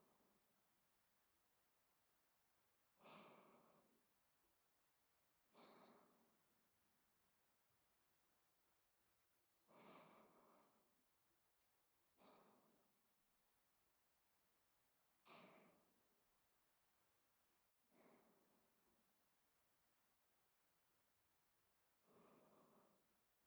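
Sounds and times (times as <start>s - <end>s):
person breathing in sleep: 3.0s - 4.1s, 5.5s - 6.5s, 9.7s - 11.0s, 12.2s - 13.0s, 15.2s - 16.0s, 17.9s - 18.8s, 22.0s - 23.2s.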